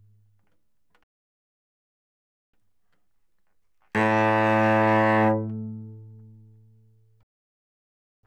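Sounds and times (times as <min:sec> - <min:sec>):
cello bowed fortissimo on the C string: 0:04.0 - 0:06.6.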